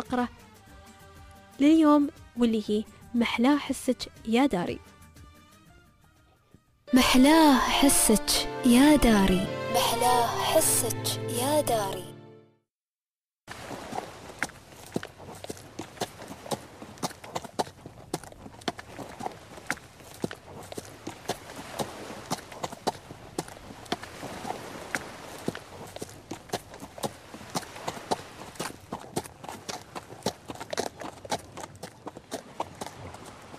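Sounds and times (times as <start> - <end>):
speech: 0.0 - 0.4, 1.6 - 4.9, 6.9 - 12.1
horse walking on the seashore: 13.6 - 33.5.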